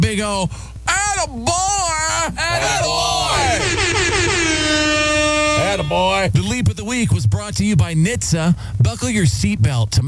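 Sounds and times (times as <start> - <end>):
speech: 0.1 - 4.4, 5.9 - 10.0
air horns blown by a radio host: 2.6 - 6.4.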